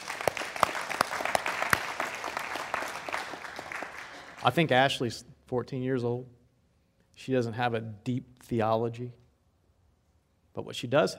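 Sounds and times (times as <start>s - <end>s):
audience clapping: 0.0s - 4.7s
speech: 4.4s - 6.4s, 7.2s - 9.2s, 10.6s - 11.1s.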